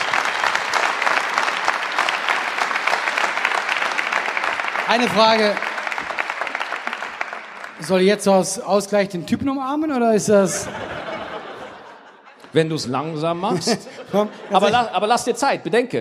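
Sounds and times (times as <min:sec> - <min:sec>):
audience applause: 0:00.0 - 0:08.6
speech: 0:04.9 - 0:05.7, 0:07.8 - 0:11.0, 0:12.5 - 0:16.0
laughter: 0:10.1 - 0:15.4.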